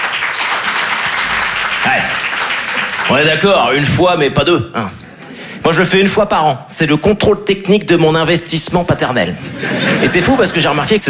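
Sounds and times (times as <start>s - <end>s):
crowd applauding: 0.0s - 4.2s
speech: 1.8s - 2.2s, 3.1s - 5.0s, 5.6s - 11.0s
laughter: 9.3s - 11.0s.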